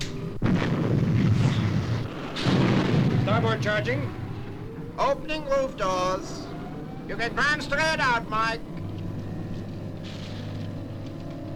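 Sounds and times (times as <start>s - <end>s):
spacecraft weapon firing with sharp crack and deep roaring rumble: 0.0s - 5.6s, 7.2s - 11.5s
speech: 3.3s - 4.2s, 5.0s - 6.4s, 7.1s - 8.7s.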